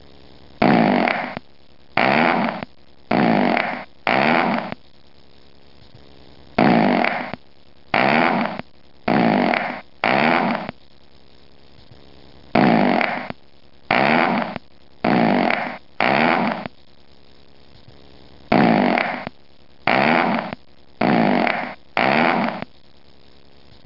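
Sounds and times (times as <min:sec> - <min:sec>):
fart: 0:00.6 - 0:01.4, 0:02.0 - 0:04.8, 0:06.6 - 0:10.8, 0:12.6 - 0:16.7, 0:18.5 - 0:22.7.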